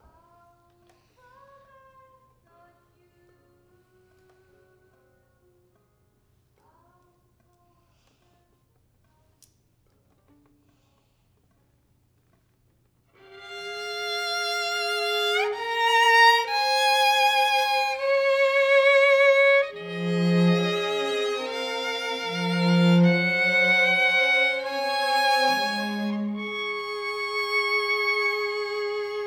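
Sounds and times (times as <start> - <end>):
violin: 13.2 - 29.2.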